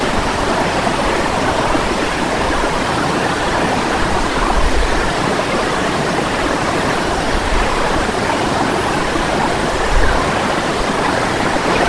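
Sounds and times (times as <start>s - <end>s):
waves: 0.0s - 11.8s.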